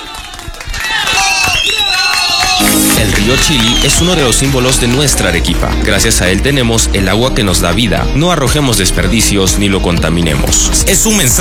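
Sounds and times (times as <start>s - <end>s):
crowd noise: 0.0s - 6.1s
studio audience clapping at a radio station in Arequipa: 0.0s - 6.7s
speech: 3.3s - 11.4s.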